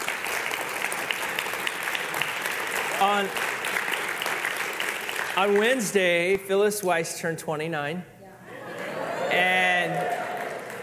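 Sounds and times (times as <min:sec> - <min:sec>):
audience clapping: 0:00.0 - 0:06.4, 0:09.4 - 0:10.8
speech: 0:03.0 - 0:03.5, 0:05.4 - 0:08.1, 0:09.4 - 0:10.1.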